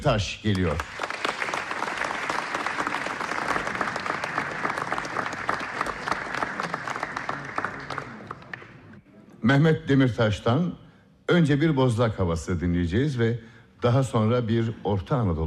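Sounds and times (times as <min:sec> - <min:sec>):
speech: 0:00.0 - 0:01.1, 0:09.4 - 0:15.4
audience applause: 0:00.5 - 0:09.0.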